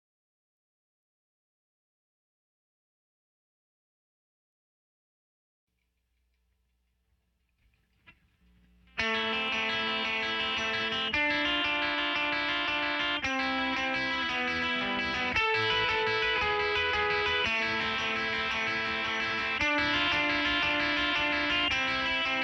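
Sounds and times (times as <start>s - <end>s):
guitar: 7.5s - 22.4s.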